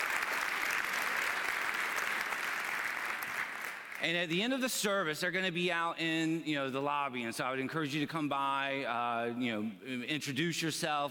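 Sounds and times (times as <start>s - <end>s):
round of applause: 0.0s - 4.0s
speech: 4.0s - 11.0s.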